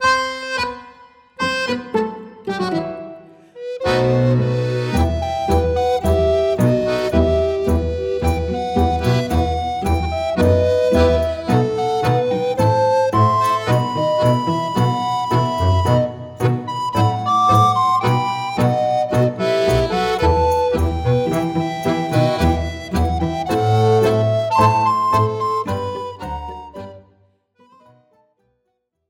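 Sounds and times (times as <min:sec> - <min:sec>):
tango on flute: 0:00.0 - 0:28.1.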